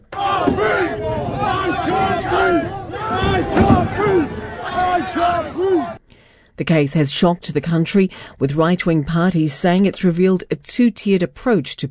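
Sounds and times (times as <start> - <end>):
protest crowd chanting: 0.0 - 6.0
speech: 6.6 - 11.9.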